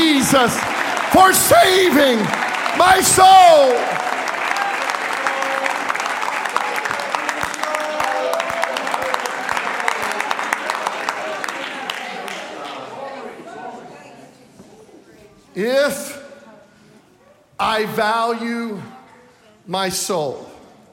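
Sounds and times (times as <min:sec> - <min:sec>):
audience clapping hands: 0:00.0 - 0:13.1
speech: 0:00.3 - 0:04.0, 0:15.6 - 0:16.0, 0:17.6 - 0:18.9, 0:19.7 - 0:20.5.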